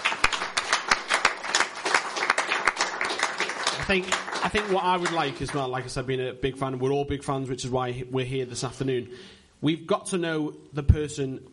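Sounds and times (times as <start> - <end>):
round of applause from a group: 0.0 - 5.8
speech: 3.9 - 11.5.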